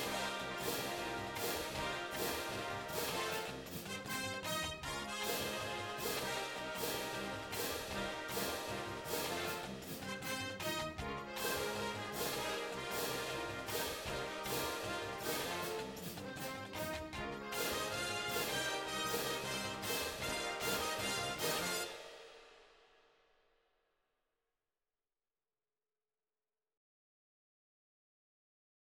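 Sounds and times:
drumline cymbals crashing: 0.0 - 4.6, 5.2 - 10.8, 11.4 - 16.2, 17.6 - 22.9
drumline playing: 0.0 - 22.6.

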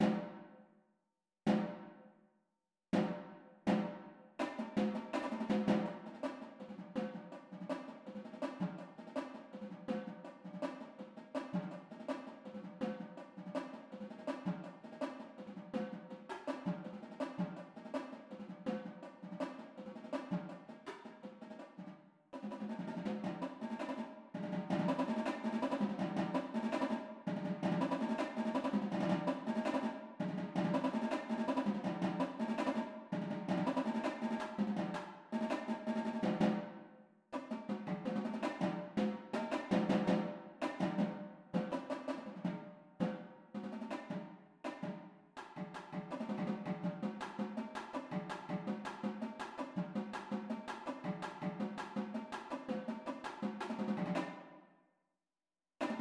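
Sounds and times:
tenor drums: 0.0 - 0.4, 1.5 - 1.9, 3.0 - 36.8, 37.4 - 54.5, 55.8 - 56.0.

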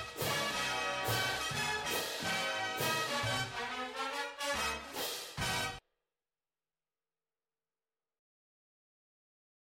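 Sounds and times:
cymbals: 0.0 - 5.8
drumline: 0.0 - 5.8.

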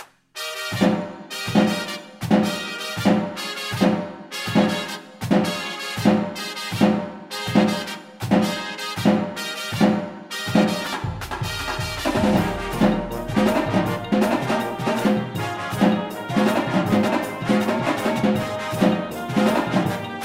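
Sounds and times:
drumline playing: 0.6 - 20.2
tenors singing: 12.1 - 20.2.

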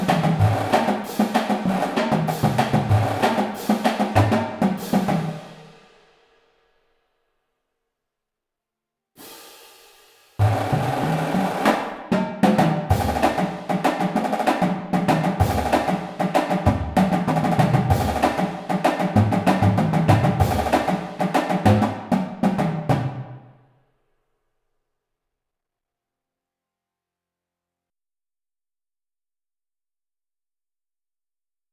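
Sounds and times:
full drumline playing: 0.0 - 5.4, 10.4 - 23.4.

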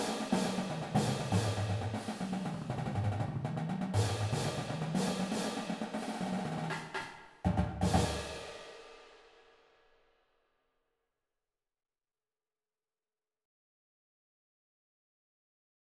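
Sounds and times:
drumline playing a cadence: 0.0 - 9.0.

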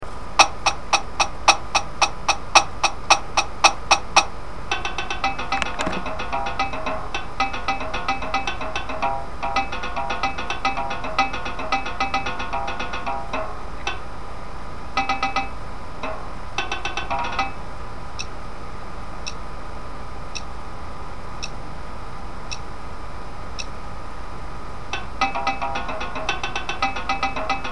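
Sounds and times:
tenor drums: 0.4 - 17.6, 24.9 - 27.7.

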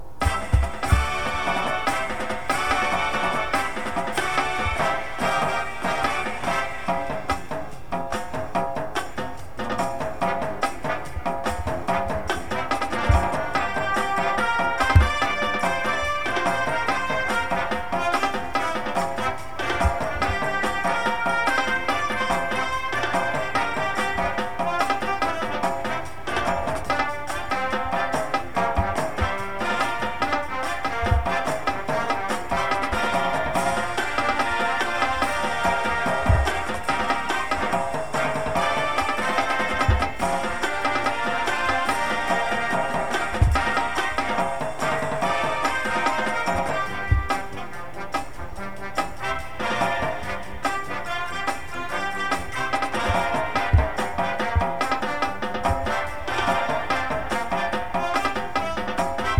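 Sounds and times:
music: 0.0 - 59.3
tenor drums: 0.0 - 59.3.

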